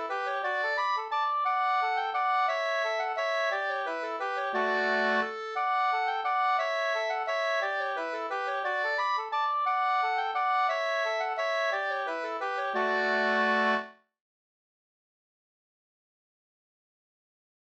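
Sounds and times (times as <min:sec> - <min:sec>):
waltz music: 0:00.0 - 0:13.9.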